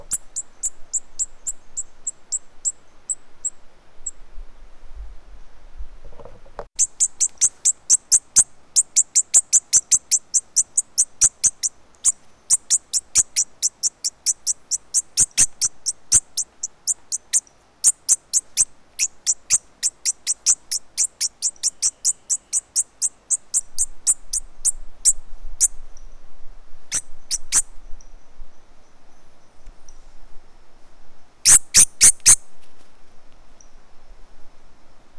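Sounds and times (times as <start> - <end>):
low hiss: 0.0 - 35.1
bird chipping: 6.8 - 24.8, 26.9 - 27.6, 31.5 - 32.4.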